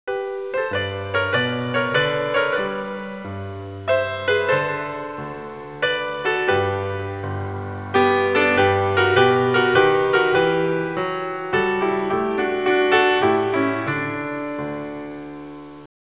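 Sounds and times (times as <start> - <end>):
classical music ringtones: 0.1 - 15.9.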